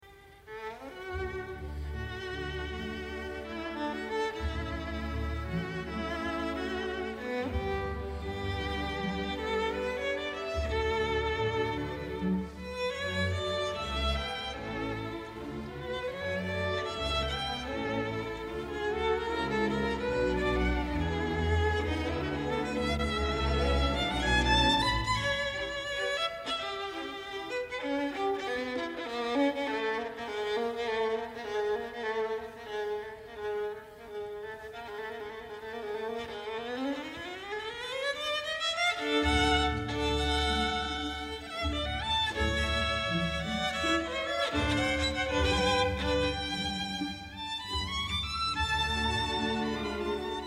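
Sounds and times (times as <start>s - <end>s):
violin concerto: 0.0s - 50.4s.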